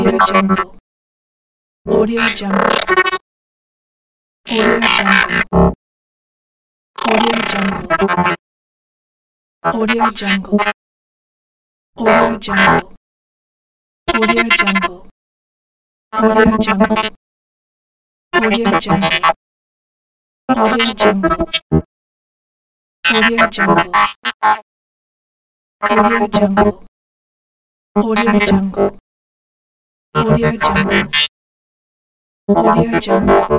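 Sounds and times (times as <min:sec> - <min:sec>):
robot droid talk: 0:00.0 - 0:00.8, 0:01.9 - 0:03.2, 0:04.5 - 0:05.8, 0:07.0 - 0:08.4, 0:09.7 - 0:10.8, 0:12.0 - 0:13.0, 0:14.1 - 0:15.0, 0:16.2 - 0:17.2, 0:18.4 - 0:19.4, 0:20.5 - 0:21.9, 0:23.1 - 0:24.6, 0:25.8 - 0:26.8, 0:28.0 - 0:29.0, 0:30.2 - 0:31.3, 0:32.5 - 0:33.5.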